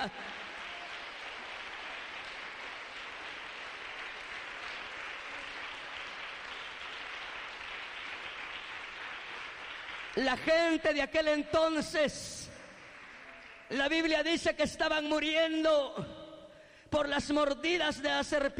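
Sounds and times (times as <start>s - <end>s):
speech: 0.0s - 0.4s, 10.2s - 12.4s, 13.7s - 16.2s, 16.9s - 18.5s
audience applauding: 0.0s - 11.0s, 12.8s - 13.8s.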